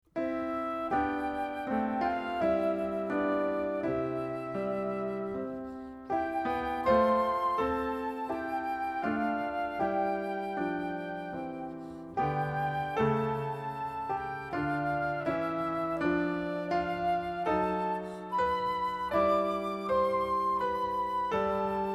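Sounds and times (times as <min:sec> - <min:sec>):
music: 0:00.0 - 0:21.9.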